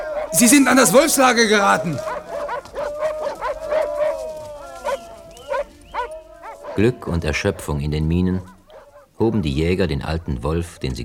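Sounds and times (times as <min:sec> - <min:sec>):
hunting dogs yipping and whimpering: 0:00.0 - 0:00.4, 0:02.0 - 0:07.7, 0:08.4 - 0:09.2
hunting dogs barking: 0:00.0 - 0:10.3
speech: 0:00.3 - 0:02.2, 0:06.8 - 0:08.5, 0:09.2 - 0:11.0.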